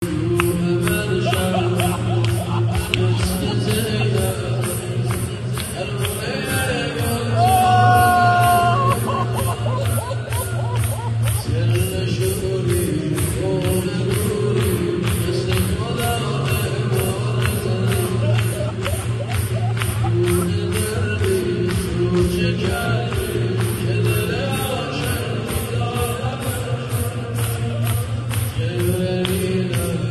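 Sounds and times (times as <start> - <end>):
mourning chant, nohe: 0.0 - 30.1
laughter: 0.8 - 12.3, 16.8 - 21.4.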